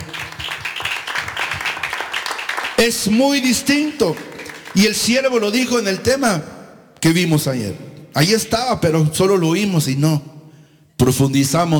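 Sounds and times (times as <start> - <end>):
audience clapping: 0.0 - 5.7
speech: 2.8 - 10.4, 11.0 - 11.7.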